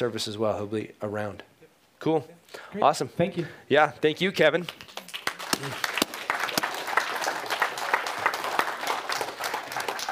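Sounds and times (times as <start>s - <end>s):
speech: 0.0s - 5.0s, 5.6s - 5.9s
audience clapping: 4.6s - 10.1s.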